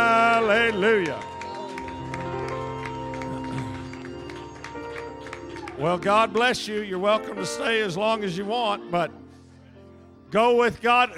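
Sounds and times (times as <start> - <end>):
audience cheering: 0.0 - 6.4
sustained musical drone: 0.0 - 8.2
audience clapping: 0.0 - 8.6
speech: 0.5 - 1.3, 5.8 - 9.2, 10.3 - 11.1.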